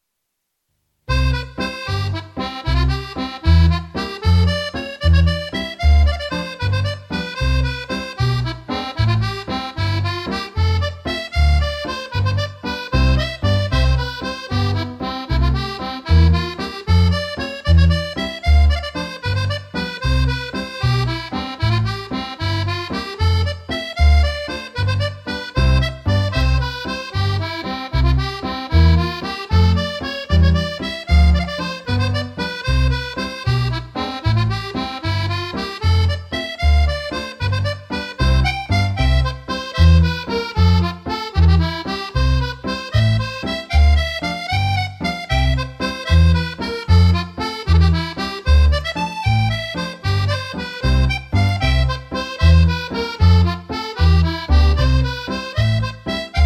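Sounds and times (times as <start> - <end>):
primary heavy jig music: 1.1 - 56.4.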